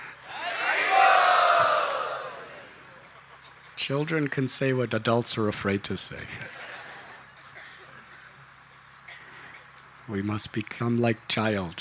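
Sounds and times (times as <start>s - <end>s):
crowd cheering: 0.2s - 3.0s
speech: 3.8s - 6.6s, 10.1s - 11.7s.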